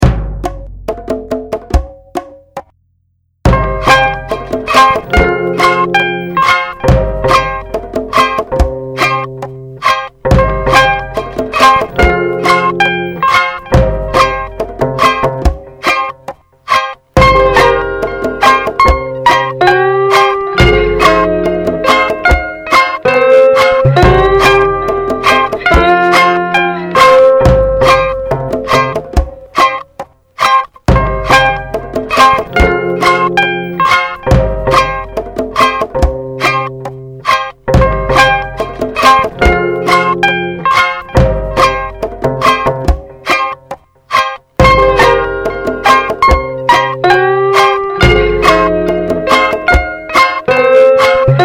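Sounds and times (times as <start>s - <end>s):
dub music: 0.0s - 2.7s, 3.5s - 51.4s.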